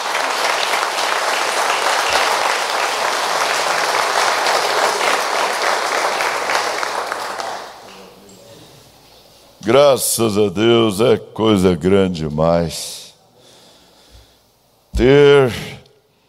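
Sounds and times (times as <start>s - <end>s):
audience applause: 0.0s - 8.2s
speech: 9.7s - 13.0s, 15.0s - 15.7s.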